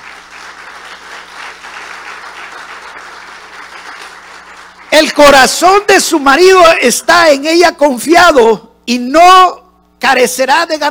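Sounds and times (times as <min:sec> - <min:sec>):
audience applause: 0:00.0 - 0:05.4
speech: 0:05.0 - 0:10.8.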